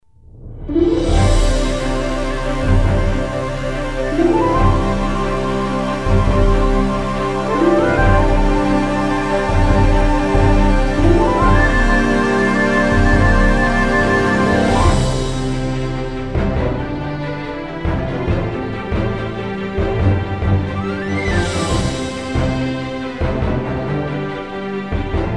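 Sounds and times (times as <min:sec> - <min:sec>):
background music pads: 0:00.6 - 0:25.3.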